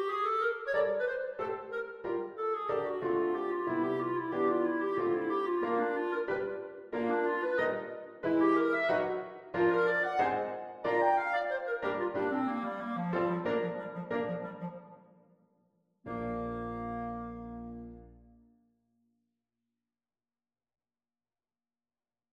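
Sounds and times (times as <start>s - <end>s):
clarinet: 0.0s - 15.2s, 16.1s - 18.5s
piano: 0.0s - 15.2s, 16.0s - 18.6s.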